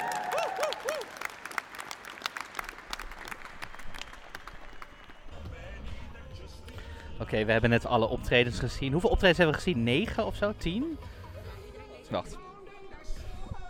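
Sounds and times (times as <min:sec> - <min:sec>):
crowd clapping: 0:00.0 - 0:05.7
speech: 0:07.3 - 0:11.2, 0:12.1 - 0:12.4.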